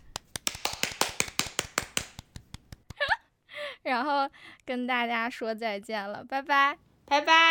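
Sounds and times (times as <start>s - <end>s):
hand claps: 0.0s - 3.0s
speech: 3.9s - 7.4s.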